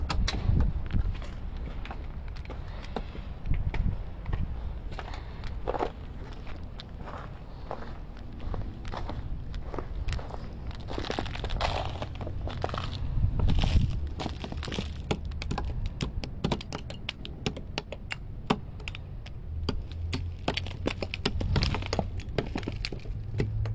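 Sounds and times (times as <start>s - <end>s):
low steady city rumble: 0.0s - 23.7s
footsteps crunching in snow: 4.9s - 15.0s
ice scraping and knocking: 11.4s - 15.8s, 19.7s - 23.6s.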